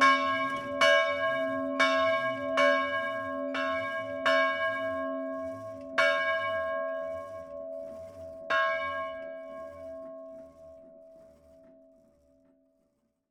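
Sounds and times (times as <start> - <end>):
bells ringing: 0.0 - 10.4.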